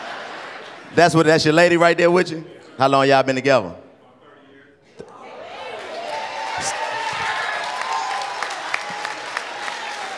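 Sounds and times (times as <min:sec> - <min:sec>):
speech: 0:00.9 - 0:03.8
audience applause: 0:05.6 - 0:10.1.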